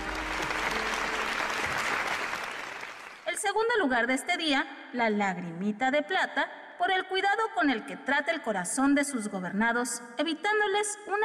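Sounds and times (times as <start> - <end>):
crowd applause: 0.0 - 3.3
speech: 3.6 - 11.2.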